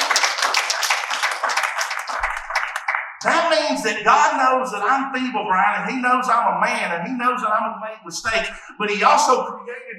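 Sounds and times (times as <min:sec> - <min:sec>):
crowd clapping: 0:00.0 - 0:03.5
speech: 0:03.2 - 0:09.9.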